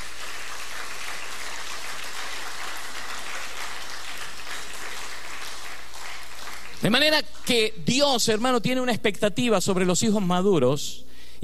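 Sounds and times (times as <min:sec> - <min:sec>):
audience applause: 0:00.0 - 0:07.5
speech: 0:06.8 - 0:11.4.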